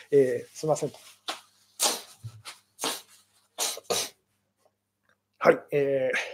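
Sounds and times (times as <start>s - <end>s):
speech: 0.0s - 1.3s, 5.4s - 6.3s
person blowing nose: 1.2s - 4.2s.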